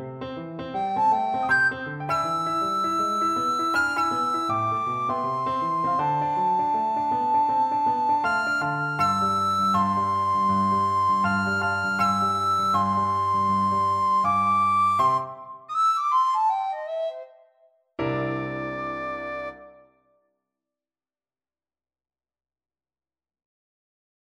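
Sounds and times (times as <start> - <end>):
jazzy birthday tune played on a recorder: 0.7 - 19.9.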